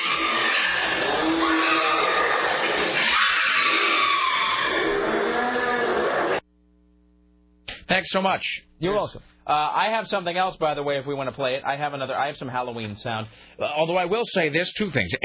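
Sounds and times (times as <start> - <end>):
woman screaming while attacked by a crazed animal: 0.0 - 6.4
speech: 8.0 - 15.2.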